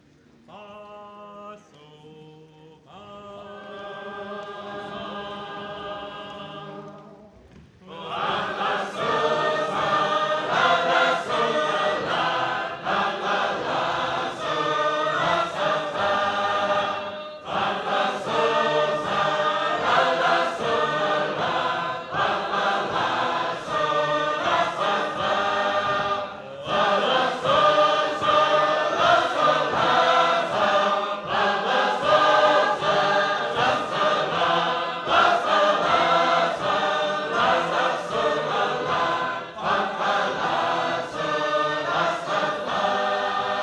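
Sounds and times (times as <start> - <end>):
Sacred Harp shape-note choir singing: 0.0 - 43.6.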